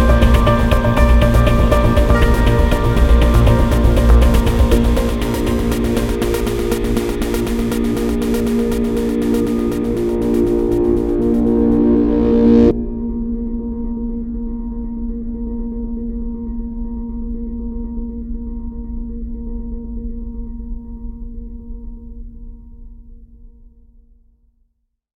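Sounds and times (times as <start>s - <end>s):
entrance music: 0.0s - 15.8s.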